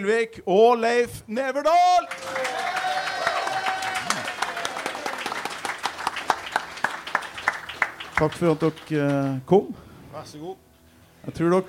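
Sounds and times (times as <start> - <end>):
speech: 0.0 - 3.2, 8.2 - 11.6
live audience applause: 2.1 - 9.2.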